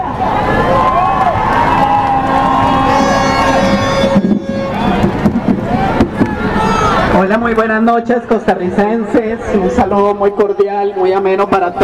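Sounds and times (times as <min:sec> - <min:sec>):
crowd applauding: 0:00.0 - 0:07.2
speech: 0:07.3 - 0:11.8.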